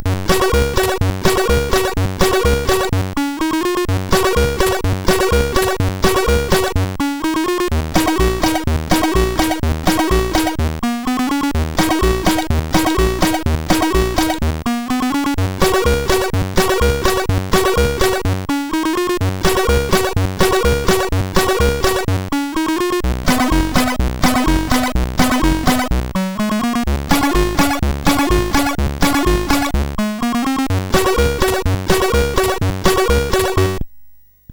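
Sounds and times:
chiptune music on a MOS6581R4 chip: 0.0 - 33.8.

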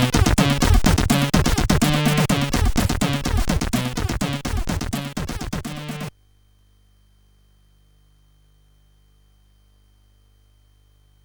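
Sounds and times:
SID CSG8580R5 chip intro music: 0.0 - 6.1.

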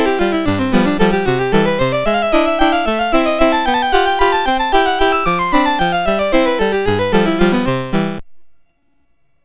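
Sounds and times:
waltz on a MOS6581R2 sound chip: 0.0 - 8.2.

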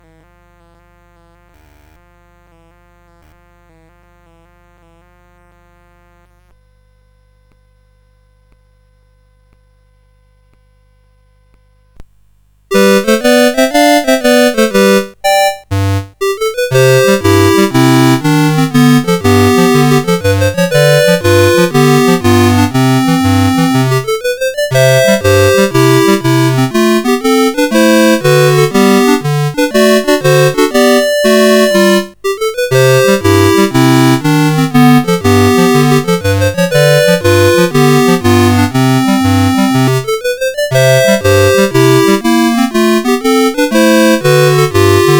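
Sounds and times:
CSG 8580 sound chip: 12.7 - 45.1.

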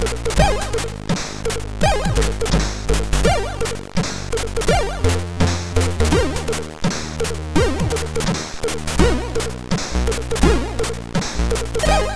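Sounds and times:
MOS6581R4 sound chip music: 0.0 - 12.1.

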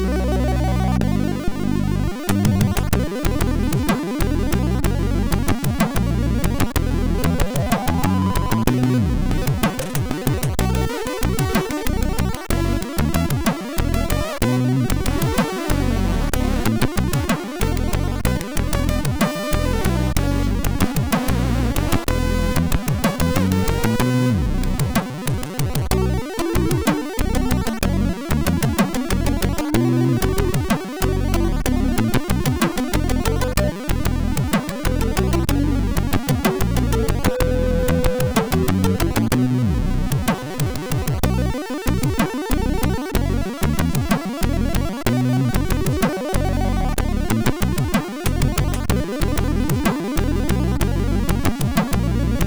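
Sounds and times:
MOS6581 SID chip music: 0.2 - 52.4.

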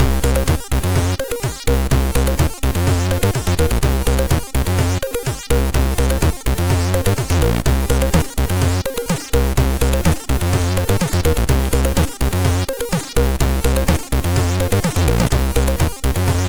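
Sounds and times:
ice cream tune on MOS6581R3 sound chip: 0.0 - 16.4.

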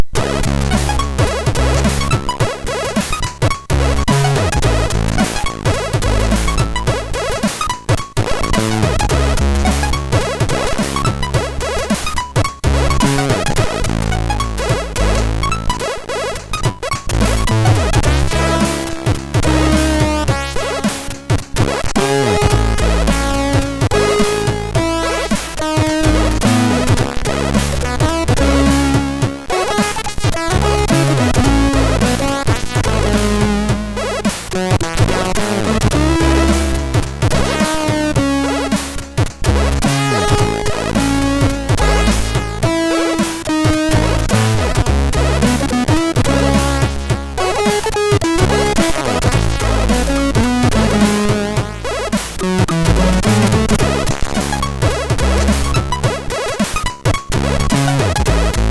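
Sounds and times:
drums on SID MOS6581R3 chip: 0.0 - 58.6.

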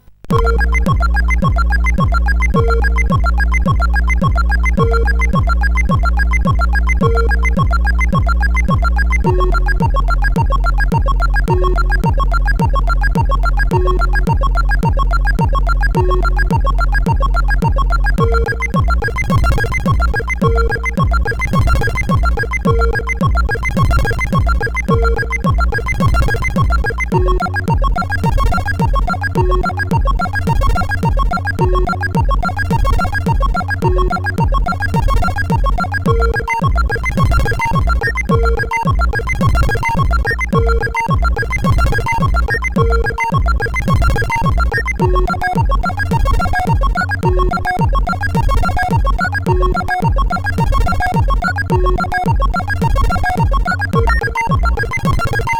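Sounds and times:
dub music: 0.3 - 55.5.

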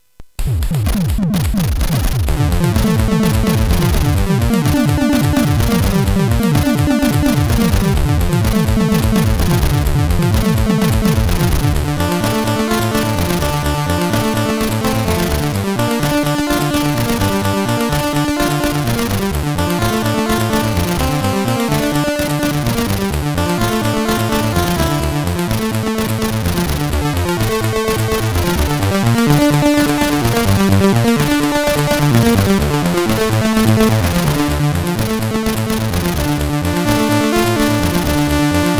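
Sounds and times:
chiptune remix on a SID CSG8580R5 chip: 0.4 - 38.7.

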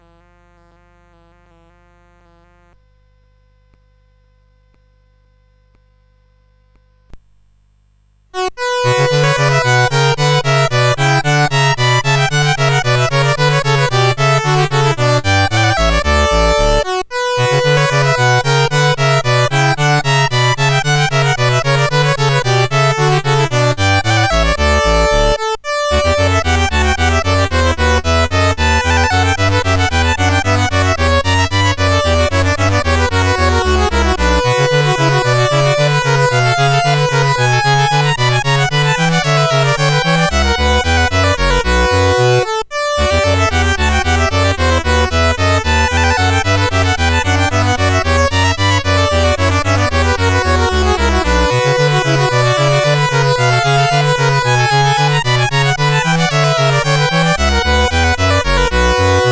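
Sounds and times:
bourree on CSG8580 sound chip: 8.4 - 59.3.

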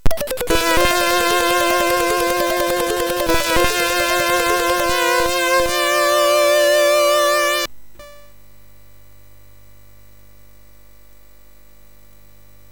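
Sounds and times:
MOS6581R3 SID chip sound: 0.0 - 8.3.

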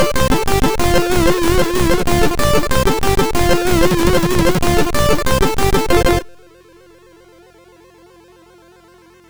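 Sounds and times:
humppa music on MOS6581R2 sound chip: 0.0 - 6.4.

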